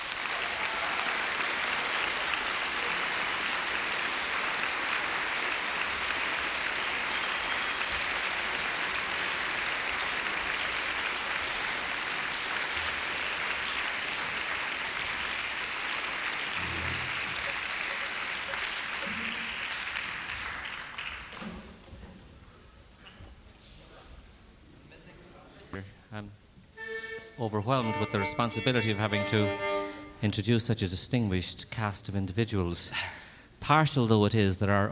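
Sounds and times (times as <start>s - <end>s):
audience applause welcoming the Irish Week staff: 0.0s - 21.8s
speech: 27.4s - 34.9s.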